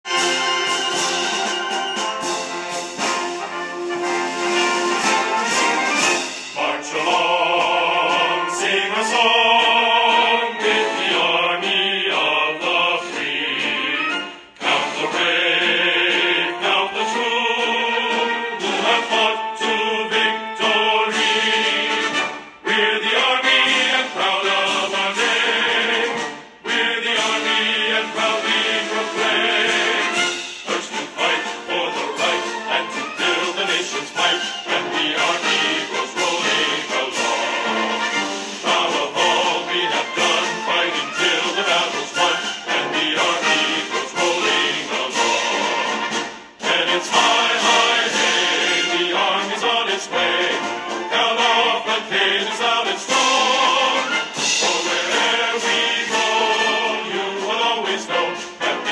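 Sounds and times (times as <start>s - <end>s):
army song: 0.0s - 58.9s.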